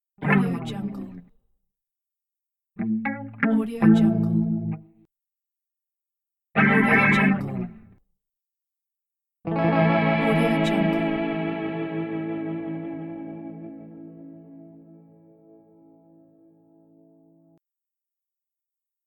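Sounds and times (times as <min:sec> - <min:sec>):
guitar: 0:00.2 - 0:01.3, 0:02.8 - 0:05.1, 0:06.6 - 0:08.0, 0:09.5 - 0:17.6.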